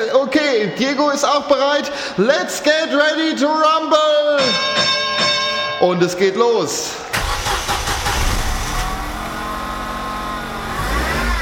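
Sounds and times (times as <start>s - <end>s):
speech: 0.0s - 5.0s, 5.8s - 7.2s
car engine revving while driving in wild circles: 7.2s - 11.3s.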